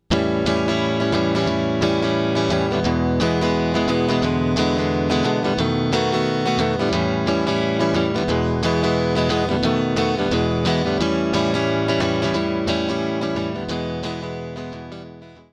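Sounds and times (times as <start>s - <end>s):
blues prog music: 0.1s - 15.3s.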